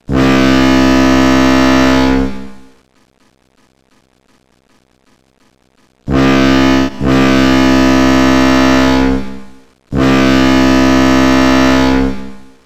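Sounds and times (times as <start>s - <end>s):
ship: 0.0s - 2.9s, 6.1s - 12.6s.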